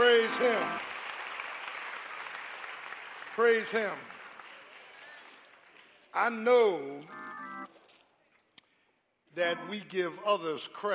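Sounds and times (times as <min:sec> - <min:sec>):
audience hand clapping: 0:00.0 - 0:06.4
speech: 0:00.3 - 0:00.9, 0:03.4 - 0:04.2, 0:06.1 - 0:07.3, 0:09.3 - 0:10.9.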